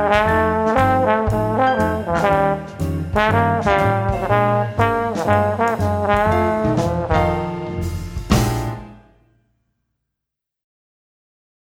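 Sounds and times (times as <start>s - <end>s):
blues guide tone pattern: 0.0s - 9.2s.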